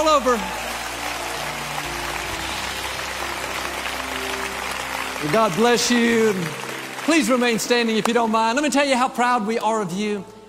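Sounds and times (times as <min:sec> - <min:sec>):
speech: 0:00.0 - 0:00.6, 0:05.2 - 0:10.4
hand clap: 0:00.0 - 0:08.6.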